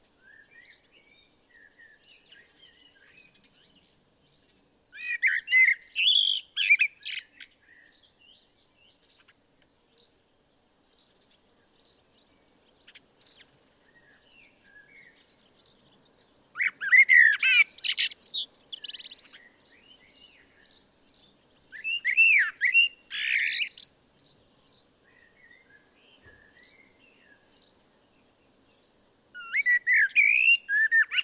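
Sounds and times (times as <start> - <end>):
common blackbird singing fluted and twangy notes: 0.0 - 10.2, 10.9 - 31.2.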